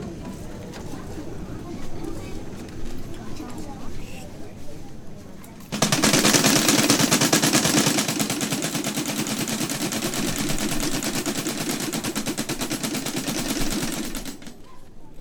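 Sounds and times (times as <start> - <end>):
camareta blasts replacing church bells: 5.7 - 14.5.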